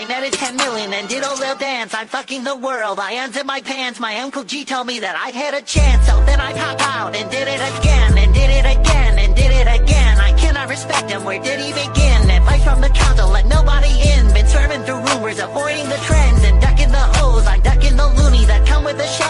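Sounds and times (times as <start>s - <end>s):
rap music: 0.0s - 19.2s.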